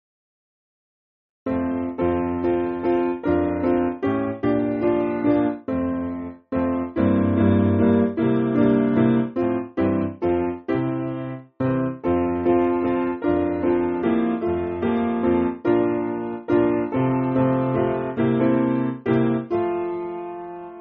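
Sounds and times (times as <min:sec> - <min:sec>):
piano: 0:01.5 - 0:20.7.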